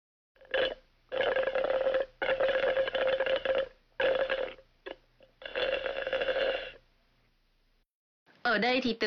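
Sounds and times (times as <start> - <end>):
slurping juice through a straw: 0.4 - 6.8.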